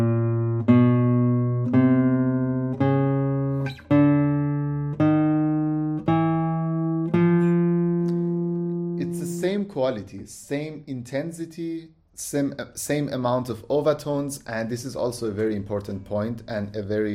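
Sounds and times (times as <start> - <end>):
plucked Spanish guitar notes on a single string: 0.0 - 9.7
speech: 9.8 - 17.1.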